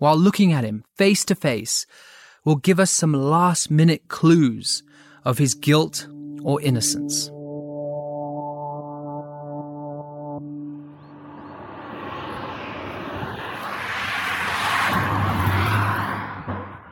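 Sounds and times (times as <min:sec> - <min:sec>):
speech: 0:00.0 - 0:07.4
car engine and road noise on a long straight road between fields: 0:10.4 - 0:16.9.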